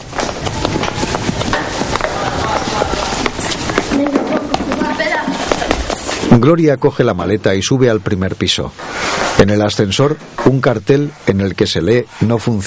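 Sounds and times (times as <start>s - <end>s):
two children running down a flight of stairs: 0.0s - 6.4s
noise: 0.0s - 12.6s
speech: 6.4s - 12.6s.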